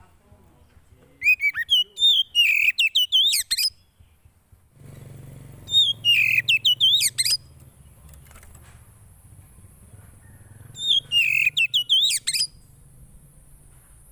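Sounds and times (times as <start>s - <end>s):
Oriental magpie-robin song: 0.6s - 4.4s, 5.5s - 8.5s, 9.9s - 13.0s.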